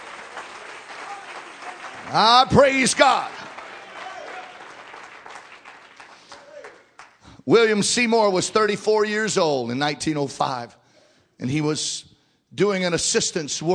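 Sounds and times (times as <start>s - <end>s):
audience clapping hands: 0.0s - 7.4s
speech: 2.1s - 3.4s, 7.5s - 10.8s, 11.4s - 13.7s.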